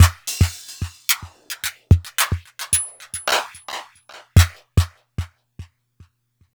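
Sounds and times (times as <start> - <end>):
electronica drum loop: 0.0 - 4.9.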